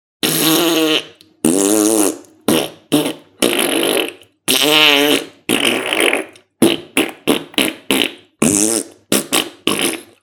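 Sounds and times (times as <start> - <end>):
fart: 0.2 - 10.2.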